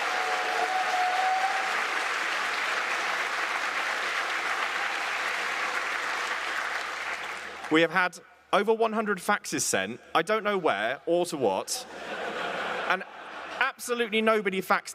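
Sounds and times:
audience applause: 0.0s - 7.7s
speech: 7.7s - 12.2s, 13.8s - 14.9s
laughter: 11.7s - 13.8s.

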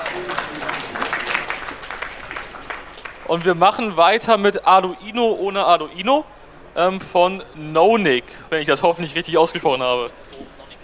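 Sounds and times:
audience applause: 0.0s - 3.9s
speech: 3.3s - 10.5s.

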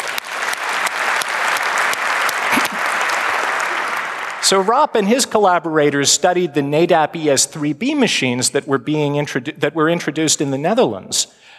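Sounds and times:
audience applause: 0.0s - 5.1s
speech: 4.4s - 11.5s.

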